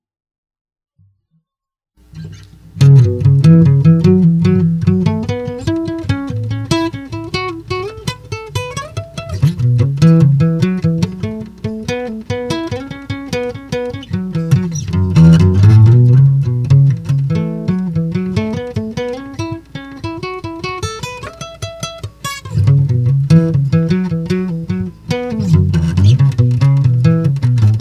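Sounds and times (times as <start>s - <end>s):
bass solo: 2.2s - 7.0s, 9.3s - 11.8s, 14.1s - 19.0s, 22.5s - 27.7s.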